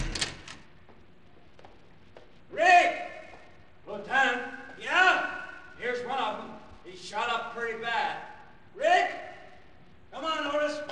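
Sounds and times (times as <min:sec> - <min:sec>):
door opening: 0:00.0 - 0:00.7
low room hum: 0:00.0 - 0:10.9.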